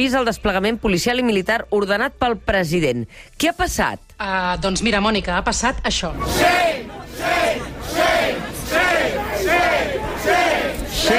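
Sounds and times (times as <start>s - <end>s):
speech: 0.0s - 7.7s
protest crowd chanting shame: 6.1s - 11.1s.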